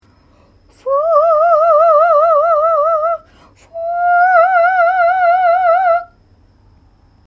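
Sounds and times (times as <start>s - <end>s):
falsetto voice: 0.7s - 6.2s.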